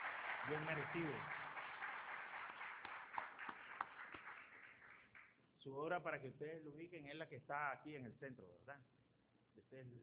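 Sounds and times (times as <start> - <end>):
audience applause: 0.0 - 5.3
speech: 0.4 - 1.4, 5.6 - 9.0, 9.6 - 10.0.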